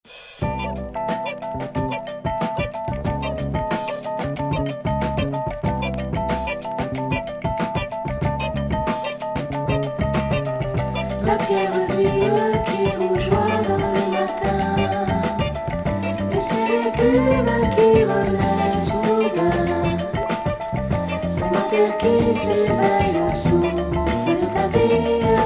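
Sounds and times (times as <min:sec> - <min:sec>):
samba music: 0:00.1 - 0:25.4.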